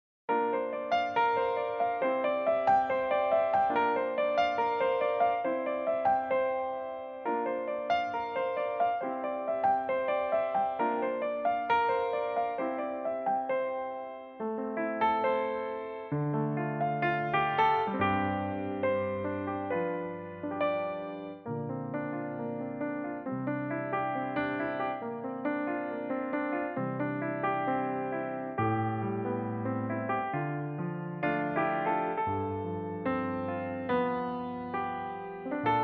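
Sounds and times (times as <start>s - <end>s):
piano: 0.3s - 35.8s.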